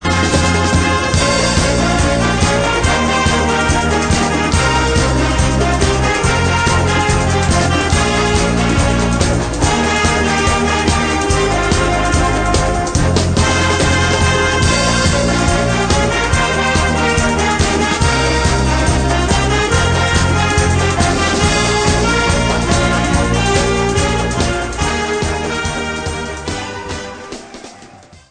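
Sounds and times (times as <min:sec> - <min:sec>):
disco music in stereo: 0:00.0 - 0:28.2.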